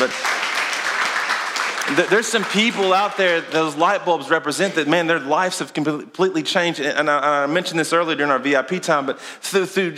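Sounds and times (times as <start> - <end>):
audience applause: 0.0 - 3.8
speech: 1.9 - 9.9.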